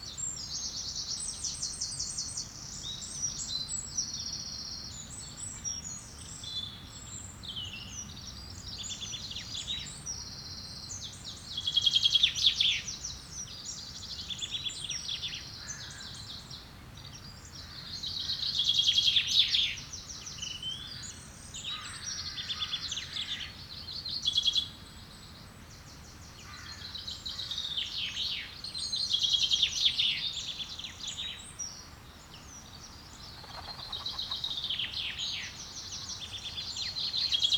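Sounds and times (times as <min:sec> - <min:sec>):
birds in woodland: 0:00.0 - 0:37.5.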